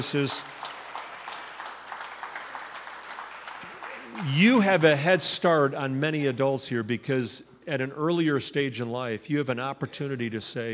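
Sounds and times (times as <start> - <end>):
speech: 0.0 - 0.6, 4.2 - 10.7
audience applause: 0.0 - 5.1.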